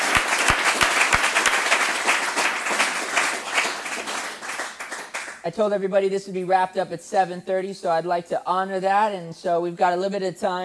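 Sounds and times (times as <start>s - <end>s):
audience applause: 0.0s - 5.4s
speech: 5.5s - 10.6s.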